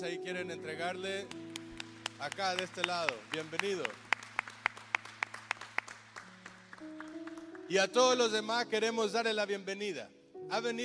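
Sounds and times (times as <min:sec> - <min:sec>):
speech: 0:00.0 - 0:01.6, 0:02.2 - 0:04.0, 0:07.7 - 0:10.8
audience clapping: 0:01.2 - 0:07.9.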